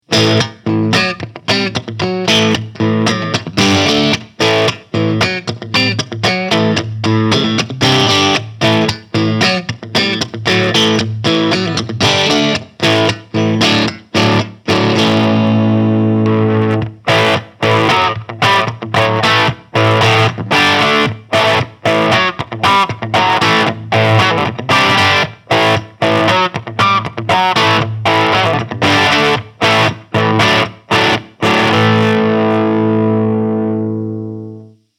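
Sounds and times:
Super Shredder Exotic FR Ziricote electric guitar light crunch: 0:00.0 - 0:34.9.

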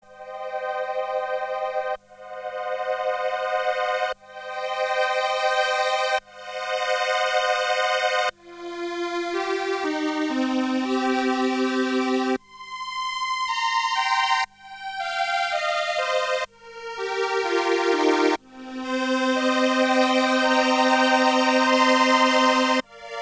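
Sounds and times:
strings: 0:00.1 - 0:23.2.

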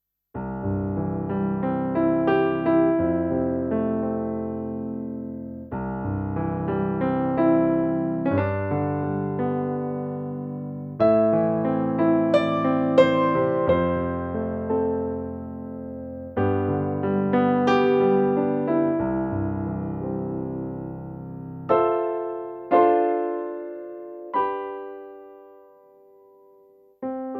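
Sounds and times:
Korg D1 piano: 0:00.4 - 0:27.3.

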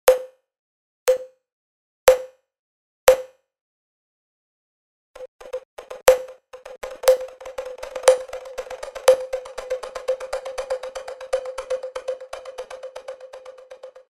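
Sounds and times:
Cubase Pro 10.5 multi-tap delay effect: 0:05.2 - 0:14.1.

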